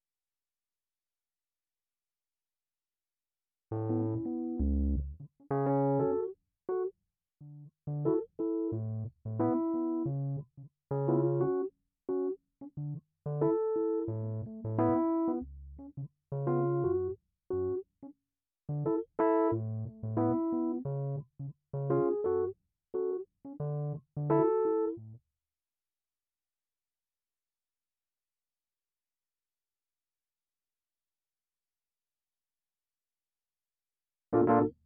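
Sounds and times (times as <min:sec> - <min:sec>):
keyboard music: 0:03.8 - 0:06.9, 0:07.9 - 0:17.8, 0:18.7 - 0:21.2, 0:21.8 - 0:25.0, 0:34.4 - 0:34.7.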